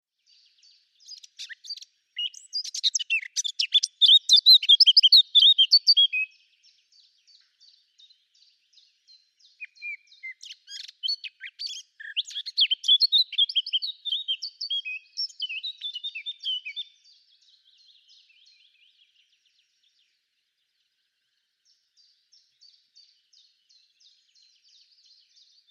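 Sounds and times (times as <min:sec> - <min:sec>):
Eurasian blackcap song: 0:00.1 - 0:25.6.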